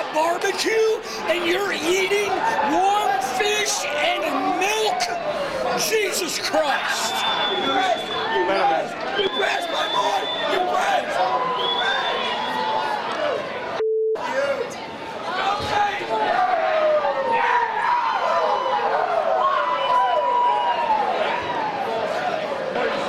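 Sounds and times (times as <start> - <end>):
large crowd yelling: 0.0 - 23.0
speech: 0.2 - 11.5.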